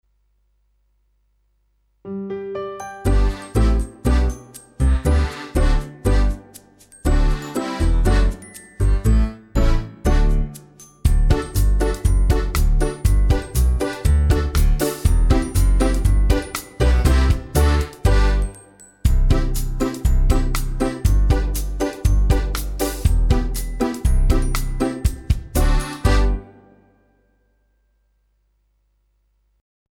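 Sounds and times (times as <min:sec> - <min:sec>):
karaoke music: 0:02.8 - 0:10.5, 0:11.2 - 0:26.5.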